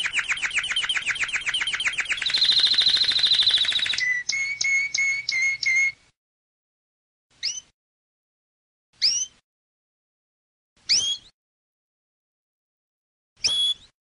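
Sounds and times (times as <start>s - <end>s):
canary singing: 0.0s - 6.1s, 7.3s - 7.8s, 9.0s - 9.4s, 10.8s - 11.4s, 13.4s - 14.0s.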